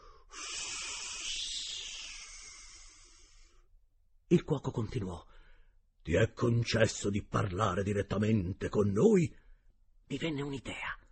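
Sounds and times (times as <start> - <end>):
person making a sustained hissing sound: 0.0 - 3.5
speech: 4.3 - 5.4, 6.0 - 9.4, 10.1 - 11.0.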